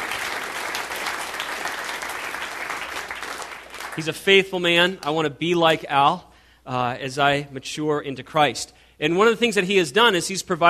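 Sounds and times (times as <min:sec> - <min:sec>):
audience applause: 0:00.0 - 0:04.1
speech: 0:04.0 - 0:10.6.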